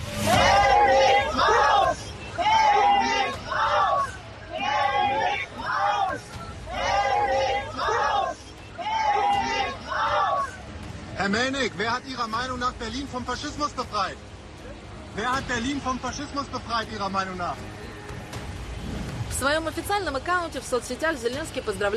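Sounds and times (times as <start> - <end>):
crowd shouting: 0.1 - 10.9
speech: 12.0 - 14.3, 15.1 - 17.8, 19.4 - 21.9.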